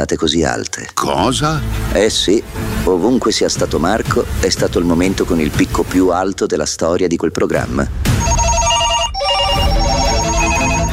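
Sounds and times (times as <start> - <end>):
speech: 0.0 - 8.2
several telephones ringing with electronic trills: 8.2 - 10.9.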